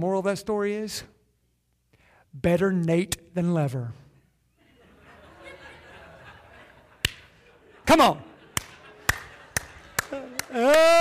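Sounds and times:
speech: 0.0s - 1.2s, 2.3s - 4.0s, 7.9s - 8.3s, 10.5s - 10.9s
laughter: 4.6s - 10.9s
audience clapping: 7.0s - 7.4s, 8.4s - 10.9s.

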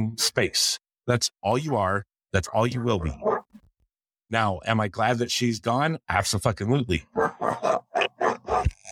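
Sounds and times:
speech: 0.1s - 3.4s, 4.3s - 7.8s
dogs growling and barking: 3.2s - 3.5s, 7.1s - 8.8s.

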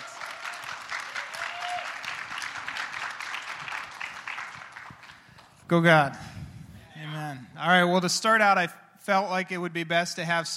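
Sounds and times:
audience clapping to greet a speaker called to the stage: 0.0s - 5.7s
speech: 5.7s - 6.3s, 7.6s - 10.5s.

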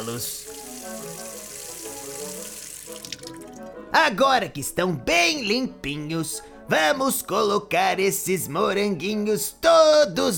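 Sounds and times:
speech: 0.0s - 1.3s, 2.9s - 10.3s
tap water running into a sink while washing strawberries: 0.0s - 3.8s.

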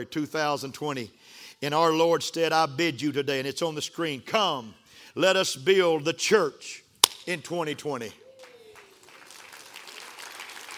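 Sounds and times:
speech: 0.0s - 8.2s
crowd applause: 8.4s - 10.7s.

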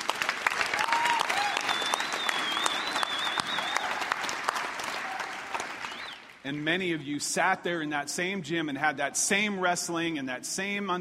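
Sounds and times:
large audience applauding in a gym: 0.0s - 6.8s
sharp whistles: 1.5s - 3.9s, 5.8s - 6.2s
speech: 6.5s - 10.9s.

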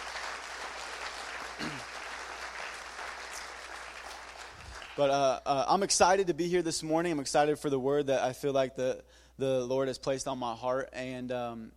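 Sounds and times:
church audience applause: 0.0s - 5.1s
speech: 5.0s - 11.7s.

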